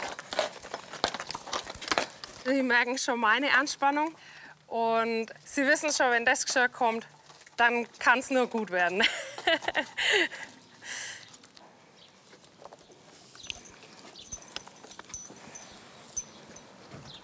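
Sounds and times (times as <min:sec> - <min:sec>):
horses' hooves clopping on a hard floor: 0:00.0 - 0:02.5, 0:12.3 - 0:17.2
speech: 0:02.5 - 0:10.5.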